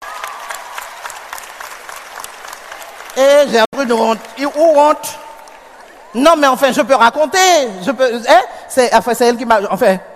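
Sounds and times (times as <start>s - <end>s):
applause: 0.0s - 6.2s
speech: 3.2s - 5.3s, 6.1s - 10.1s.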